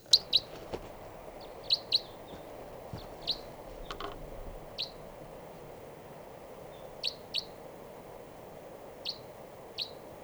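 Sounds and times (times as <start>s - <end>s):
type 3 crossbill sharp high kip calls: 0.0s - 8.0s
faint outdoor hiss: 0.0s - 10.2s.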